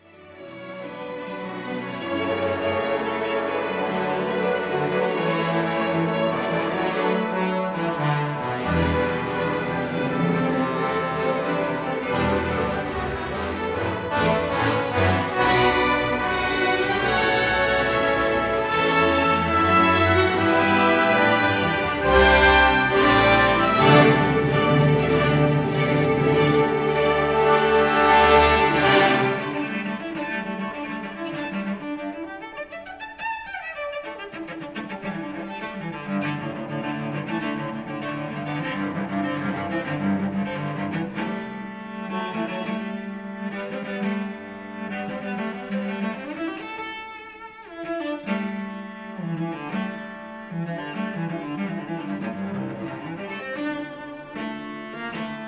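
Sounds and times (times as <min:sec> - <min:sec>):
cello concerto: 0:00.0 - 0:55.4.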